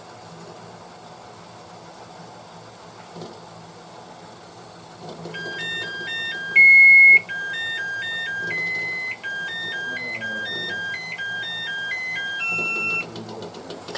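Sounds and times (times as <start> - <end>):
musical egg timer playing an electronic melody: 5.4 - 13.1.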